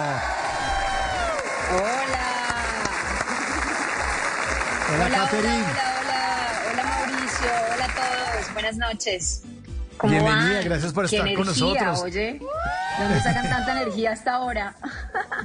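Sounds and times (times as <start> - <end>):
audience applause and cheering: 0.0 - 8.6, 12.4 - 14.0
speech: 1.7 - 2.2, 4.9 - 5.9, 8.4 - 15.0
laughter: 2.9 - 4.6, 12.9 - 14.0, 14.8 - 15.4.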